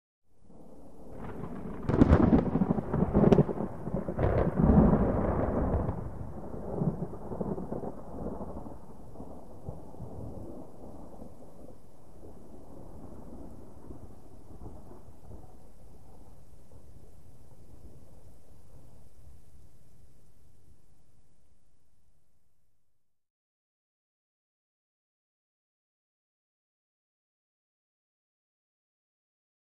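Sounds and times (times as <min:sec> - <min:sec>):
distant thunder rippling: 0:00.4 - 0:19.5.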